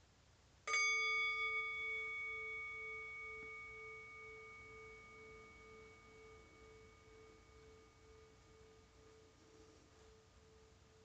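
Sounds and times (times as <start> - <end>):
meditation bell being rung: 0.7 - 11.0.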